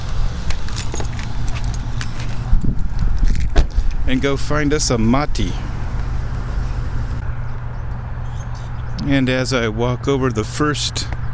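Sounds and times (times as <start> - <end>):
vehicle rumble: 0.0 - 11.3
clicks and rustles of getting out of a car: 0.5 - 4.0
keys jangling: 0.5 - 4.0
speech: 4.1 - 5.7, 9.0 - 11.2.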